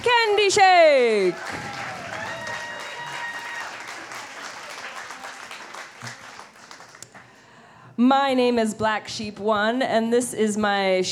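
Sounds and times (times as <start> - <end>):
speech: 0.2 - 1.9, 8.0 - 11.0
audience applause for the band: 1.1 - 7.2.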